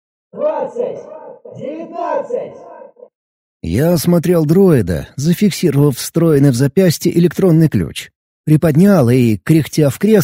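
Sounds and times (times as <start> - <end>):
speech: 0.3 - 10.2
crowd shouting joyful countdown: 0.4 - 2.8.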